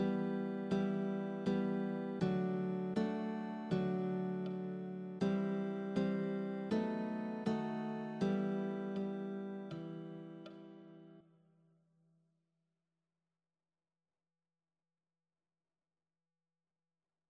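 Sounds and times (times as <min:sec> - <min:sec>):
guitar: 0:00.0 - 0:11.2.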